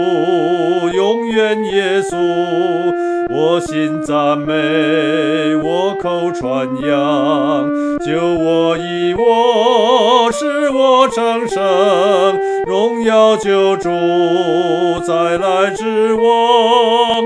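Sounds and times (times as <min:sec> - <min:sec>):
first-voice solo singing: 0:00.0 - 0:17.2.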